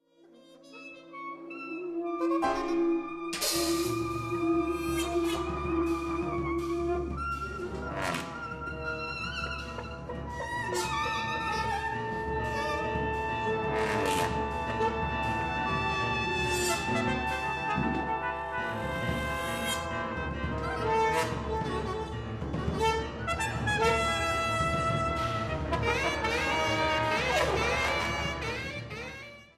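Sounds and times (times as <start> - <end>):
musical improvisation: 0.0 - 29.5.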